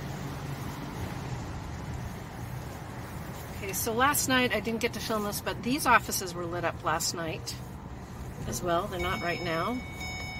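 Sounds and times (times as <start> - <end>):
car road and engine rumble pulling out of the White House lot: 0.0 - 10.3
speech: 3.7 - 7.7, 8.5 - 10.0.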